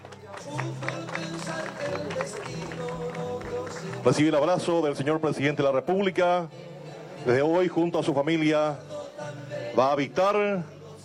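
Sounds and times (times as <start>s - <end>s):
audience applause: 0.0s - 4.4s
speech: 4.0s - 8.9s, 9.8s - 10.8s.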